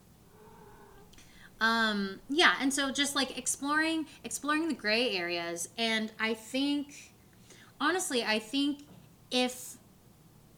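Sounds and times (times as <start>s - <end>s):
cat meowing: 0.3s - 1.1s
speech: 1.6s - 7.1s, 7.8s - 9.8s.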